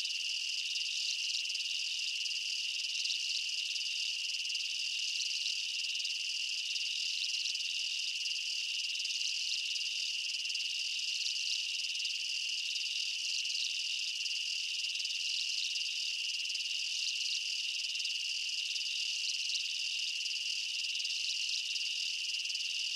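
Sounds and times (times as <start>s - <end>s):
insects chirping in a dense night jungle chorus: 0.0s - 22.9s.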